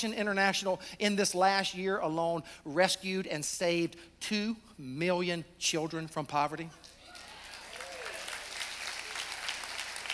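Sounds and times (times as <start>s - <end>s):
speech: 0.0s - 6.9s
audience clapping: 7.0s - 10.1s.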